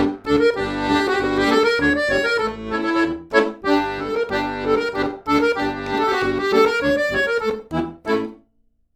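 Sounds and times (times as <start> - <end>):
Klezmer Jewish dance music: 0.0 - 8.5.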